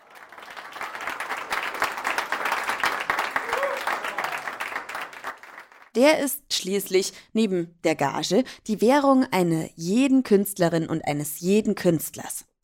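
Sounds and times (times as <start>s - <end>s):
audience applause: 0.0s - 5.9s
speech: 6.0s - 12.5s.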